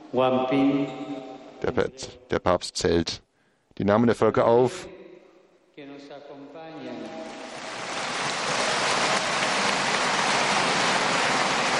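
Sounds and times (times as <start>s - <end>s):
speech: 0.1s - 3.2s, 3.8s - 5.0s
large crowd applauding: 7.2s - 11.7s.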